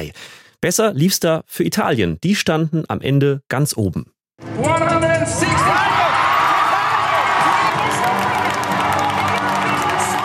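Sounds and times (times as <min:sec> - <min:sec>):
speech: 0:00.0 - 0:06.1
crowd cheering at a song contest: 0:04.6 - 0:10.2.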